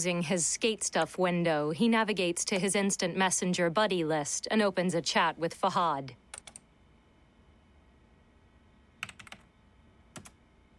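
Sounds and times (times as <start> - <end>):
speech: 0.0 - 6.2
typing on a computer keyboard: 6.3 - 6.6, 9.0 - 9.5, 10.1 - 10.4.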